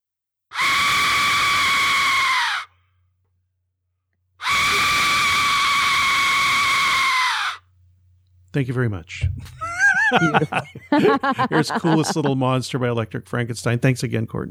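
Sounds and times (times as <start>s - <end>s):
Aztec death whistle blown: 0.5s - 2.7s, 4.4s - 7.6s
speech: 8.6s - 14.4s
laughter: 9.2s - 13.3s.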